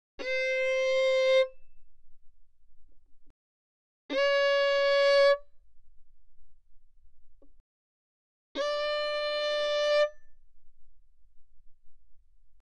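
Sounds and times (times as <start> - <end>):
violin bowed fortissimo on the G string: 0.2 - 1.6, 4.1 - 5.5, 8.6 - 10.3.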